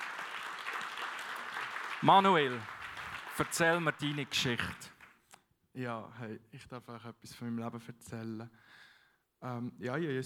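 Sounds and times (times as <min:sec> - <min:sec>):
audience applause: 0:00.0 - 0:05.2
speech: 0:02.0 - 0:02.7, 0:03.4 - 0:04.9, 0:05.8 - 0:08.8, 0:09.4 - 0:10.2.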